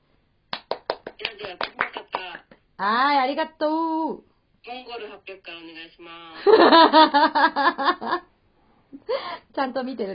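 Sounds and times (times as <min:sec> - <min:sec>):
hands clapping in applause after a scary story: 0:00.5 - 0:02.6
speech: 0:01.4 - 0:01.8, 0:02.8 - 0:08.3, 0:09.0 - 0:10.1
laughter: 0:06.4 - 0:08.2.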